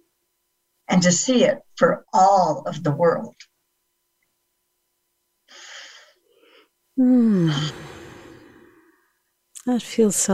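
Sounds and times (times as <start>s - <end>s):
speech: 0.9s - 3.5s, 7.0s - 7.9s, 9.6s - 10.3s
loud voiced sighing exhale during a calming guided exercise: 5.5s - 9.0s
soft airy inhalations during a calming guided exercise: 5.5s - 9.2s.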